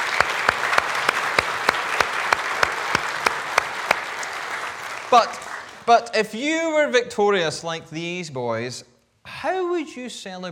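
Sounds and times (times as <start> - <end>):
audience applause: 0.0 - 6.0
speech: 5.1 - 10.5.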